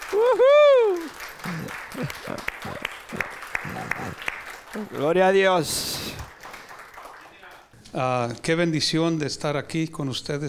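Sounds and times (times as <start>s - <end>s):
audience applause: 0.0s - 7.7s
speech: 0.1s - 2.5s, 4.8s - 6.1s, 7.9s - 10.4s.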